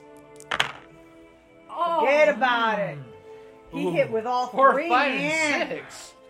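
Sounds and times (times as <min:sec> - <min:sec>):
dice clattering onto a table: 0:00.4 - 0:00.9
speech: 0:02.1 - 0:03.1, 0:03.7 - 0:06.1.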